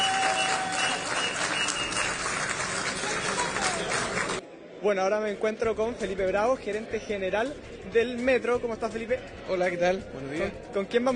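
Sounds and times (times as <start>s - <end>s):
applause: 0.0s - 4.4s
speech: 4.8s - 11.1s.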